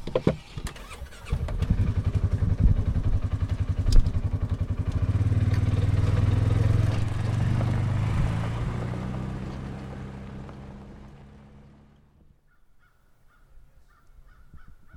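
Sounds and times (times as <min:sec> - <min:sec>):
small all-terrain vehicle engine starting, chugging and revving: 0:00.2 - 0:12.1.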